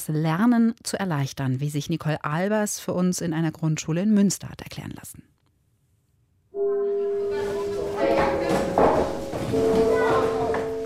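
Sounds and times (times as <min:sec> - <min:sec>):
speech: 0:00.0 - 0:05.3
school gong signalling the next lesson: 0:06.6 - 0:10.8
bustle of children's voices and clatter: 0:06.9 - 0:10.8.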